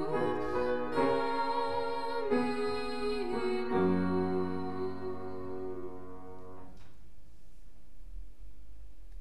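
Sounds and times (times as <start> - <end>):
sopranos singing a Latin hymn: 0.0 - 6.7.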